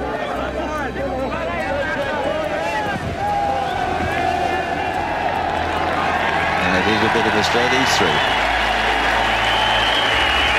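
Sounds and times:
crowd cheering for a golf champion: 0.0 - 10.5
clapping: 5.3 - 10.5
speech: 7.1 - 8.4.

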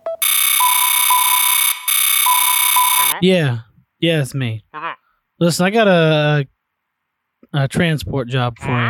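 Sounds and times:
phone touch-tone dialing beeps: 0.2 - 3.1
speech: 3.1 - 4.7, 5.4 - 6.5, 7.5 - 8.8.

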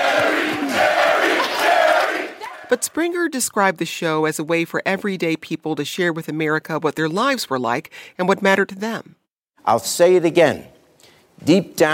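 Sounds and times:
Jerry Springer Show studio audience shouting: 0.0 - 2.8
speech: 2.7 - 10.7, 11.4 - 11.9.

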